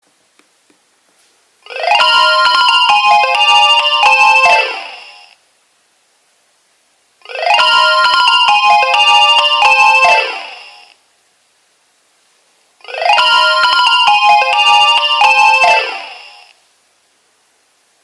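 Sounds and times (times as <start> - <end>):
Nokia 2300 ringtones: 1.7 - 5.2, 7.3 - 10.8, 12.9 - 16.5.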